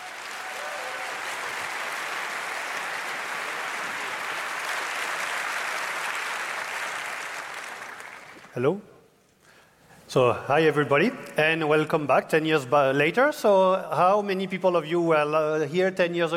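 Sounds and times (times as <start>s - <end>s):
audience applause for a speaker: 0.0s - 8.5s
speech: 8.6s - 8.9s, 10.1s - 16.3s.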